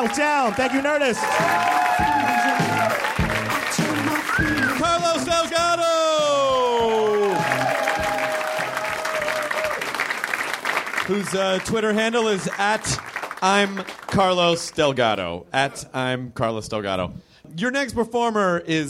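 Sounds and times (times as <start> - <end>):
speech: 0.0 - 3.2, 4.4 - 7.6, 11.1 - 18.8
whoops and cheers: 0.0 - 3.3, 4.3 - 5.0, 6.1 - 10.0
audience applause at a stand-up comedy show: 0.0 - 5.6, 6.4 - 14.4.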